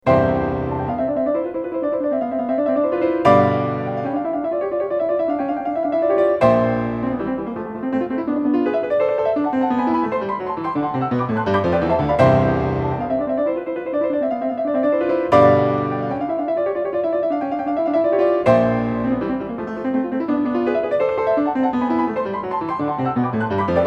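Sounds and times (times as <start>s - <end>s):
piano variations in C: 0.0s - 23.8s.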